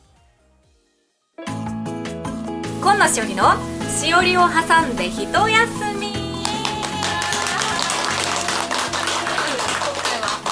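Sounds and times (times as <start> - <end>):
music playing: 2.7 - 8.2
speech: 2.8 - 6.2
audience applause: 2.8 - 10.5.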